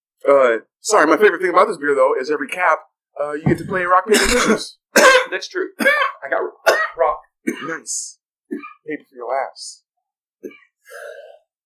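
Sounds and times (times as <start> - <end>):
speech: 0.2 - 9.8, 10.4 - 11.2
person coughing into a microphone: 3.5 - 7.8, 8.5 - 8.8.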